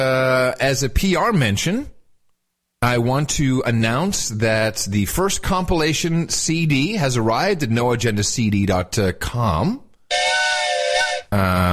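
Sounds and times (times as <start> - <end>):
speech: 0.0 - 2.0, 2.8 - 9.8, 11.3 - 11.7
train whistle: 10.1 - 11.3.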